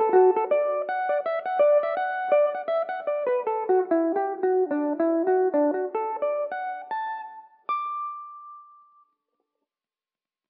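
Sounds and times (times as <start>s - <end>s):
Irish mandolin playing in D major: 0.0s - 6.9s.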